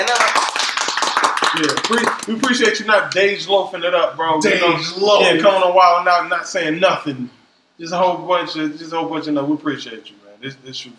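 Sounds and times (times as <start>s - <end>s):
group applause: 0.0s - 2.9s
speech: 1.6s - 10.9s.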